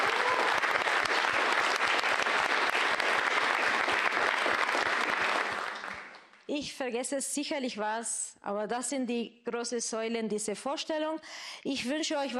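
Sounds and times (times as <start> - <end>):
audience applause: 0.0 - 6.3
speech: 6.6 - 12.3.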